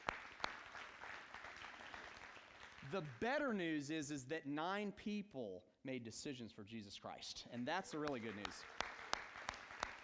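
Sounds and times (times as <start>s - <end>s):
audience applause: 0.0s - 3.2s, 7.9s - 10.0s
speech: 2.9s - 8.8s.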